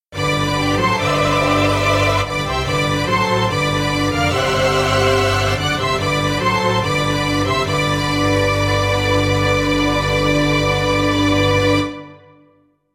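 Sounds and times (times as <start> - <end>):
string orchestra fanfare: 0.1 - 12.3.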